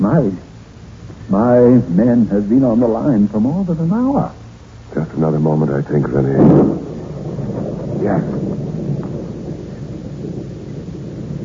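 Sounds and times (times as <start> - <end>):
rain: 0.0 - 11.4
speech: 0.2 - 0.5, 1.3 - 6.9, 8.0 - 8.7
thunder: 5.0 - 11.4.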